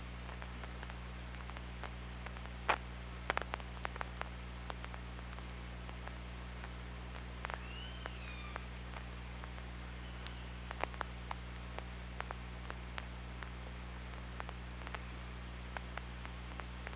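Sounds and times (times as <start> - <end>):
constant low hum: 0.0 - 16.9
sharp clicks: 0.3 - 13.5
killer whale underwater call whistles: 7.6 - 8.6.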